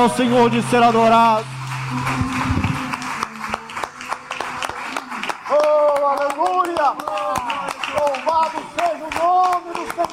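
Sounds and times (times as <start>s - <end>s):
speech: 0.0s - 2.6s, 6.8s - 10.1s
audience clapping: 0.0s - 10.1s.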